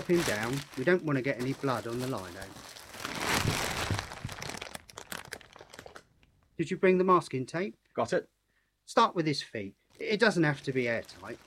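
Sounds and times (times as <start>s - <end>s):
plastic sheets crinkling as handled over a lino floor: 0.0s - 6.2s, 9.9s - 11.4s
speech: 0.1s - 2.8s, 6.6s - 8.3s, 8.9s - 11.4s.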